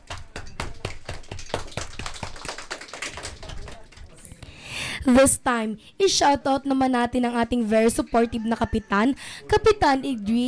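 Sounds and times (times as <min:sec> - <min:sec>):
audience applause: 0:00.0 - 0:04.0
speech: 0:05.0 - 0:10.4.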